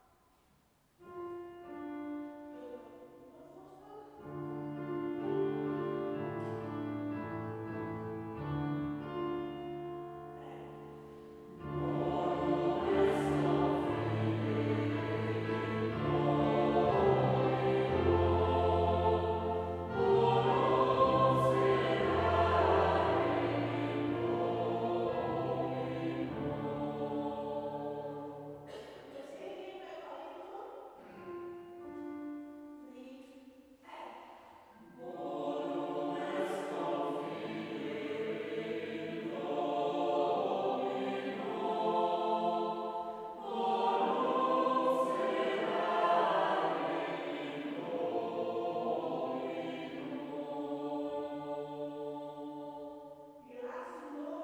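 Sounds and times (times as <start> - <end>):
Taize chant: 1.0 - 54.4.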